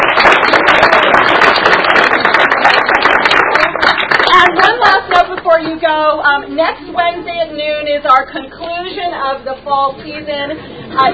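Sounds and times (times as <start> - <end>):
applause for sixth graders: 0.0 - 5.8
speech: 6.0 - 11.1.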